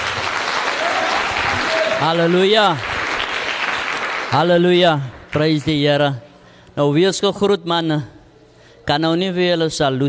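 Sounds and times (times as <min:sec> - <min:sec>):
audience applause: 0:00.0 - 0:04.4
speech: 0:02.0 - 0:02.9, 0:04.3 - 0:08.2, 0:08.8 - 0:10.0.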